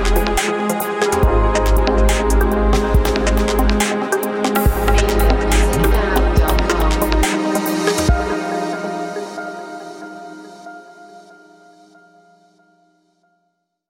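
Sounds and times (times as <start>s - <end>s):
deep dub garage music: 0.0s - 9.5s.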